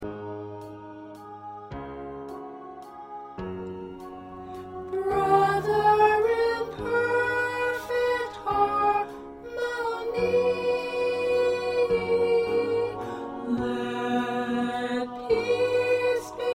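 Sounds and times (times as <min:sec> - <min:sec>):
soprano singing: 0:00.0 - 0:16.5.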